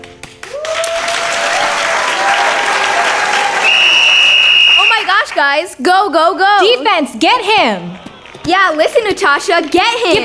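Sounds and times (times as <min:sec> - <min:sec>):
crowd cheering and clapping in stadium stands: 0:00.2 - 0:05.7, 0:07.4 - 0:10.2
high whistle-like tone: 0:03.6 - 0:05.0
speech: 0:05.4 - 0:10.2.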